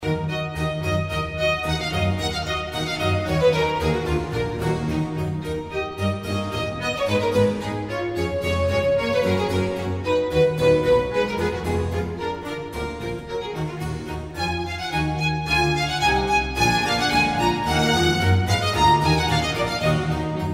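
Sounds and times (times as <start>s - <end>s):
violin concerto in A minor allegro: 0.0s - 20.5s.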